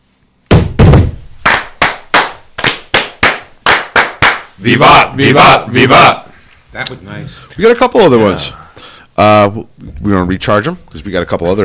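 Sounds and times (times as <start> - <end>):
lodge brethren clapping in unison for Masonic fire: 1.4 - 5.0
speech: 4.6 - 11.6.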